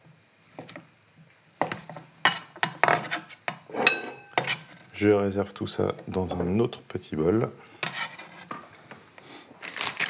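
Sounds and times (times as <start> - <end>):
knife cutting a block of feta into slices and cubes: 2.3 - 4.8
speech: 5.0 - 7.8.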